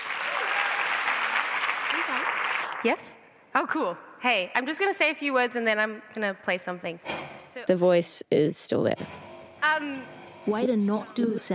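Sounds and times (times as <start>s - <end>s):
audience clapping to welcome performer: 0.0s - 3.2s
speech: 2.1s - 9.2s, 9.8s - 11.5s.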